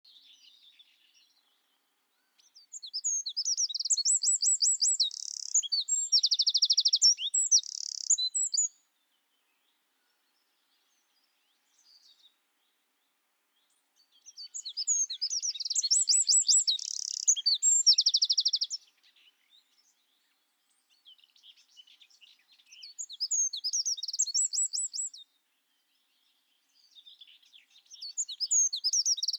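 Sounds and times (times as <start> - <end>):
Eurasian wren shrill song: 2.4 - 8.8, 14.2 - 19.2, 21.2 - 25.2, 26.8 - 29.3.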